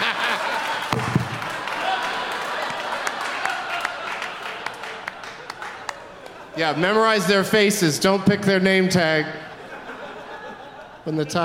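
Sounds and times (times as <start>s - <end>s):
audience applause: 0.0s - 6.5s
laughter: 0.0s - 7.6s, 9.0s - 11.4s
speech: 6.6s - 9.4s, 11.1s - 11.4s.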